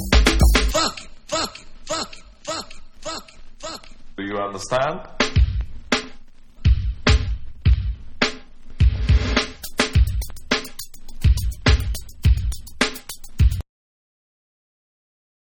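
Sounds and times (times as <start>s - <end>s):
bonus beats: 0.0s - 1.6s, 5.2s - 13.6s.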